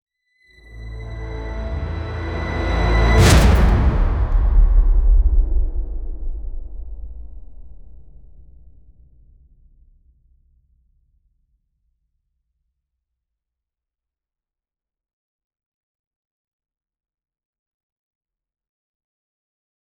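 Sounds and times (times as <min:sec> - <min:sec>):
cinematic music: 0:00.6 - 0:08.2.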